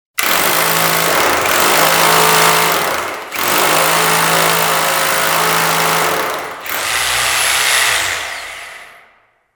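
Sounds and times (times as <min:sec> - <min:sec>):
rotary hammer drilling: 0:00.2 - 0:09.3.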